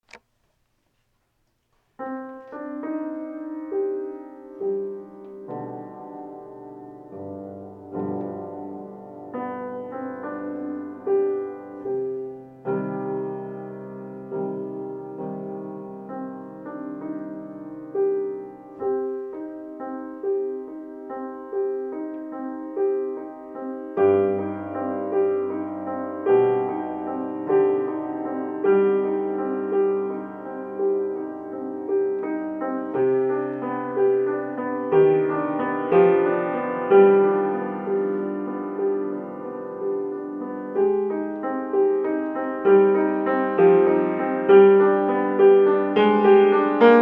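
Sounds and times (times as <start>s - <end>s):
piano: 0.0s - 47.0s.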